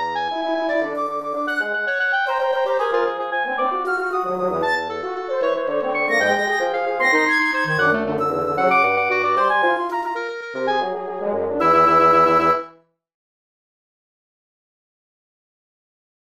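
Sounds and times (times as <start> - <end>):
wind quintet: 0.4 - 12.8.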